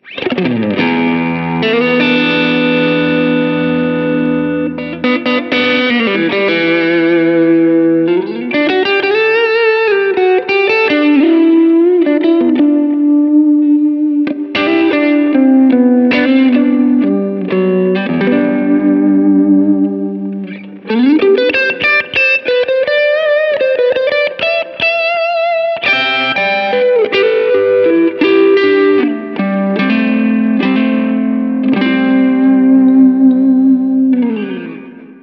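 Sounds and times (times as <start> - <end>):
crunchy lead tone: 0.0 - 35.2.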